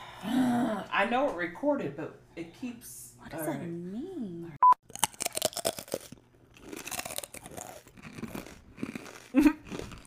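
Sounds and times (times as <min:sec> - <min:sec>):
speech: 0:01.0 - 0:04.6
crunching cinnamon sugar pita chips being chewed: 0:04.9 - 0:10.0.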